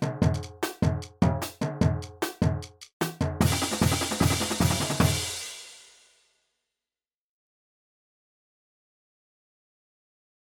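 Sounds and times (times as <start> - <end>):
stadium brass groove: 0.0 - 6.1.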